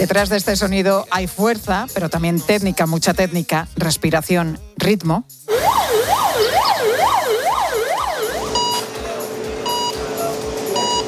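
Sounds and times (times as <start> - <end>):
speech: 0.0 - 5.9
operating room sounds: 5.5 - 11.0.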